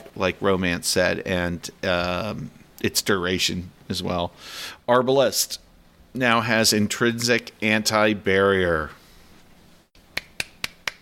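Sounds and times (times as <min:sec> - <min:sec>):
speech: 0:00.2 - 0:09.0
hand clapping: 0:10.1 - 0:11.0.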